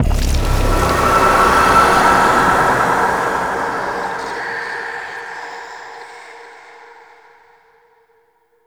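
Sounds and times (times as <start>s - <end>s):
hex appear effect: 0.0s - 5.1s.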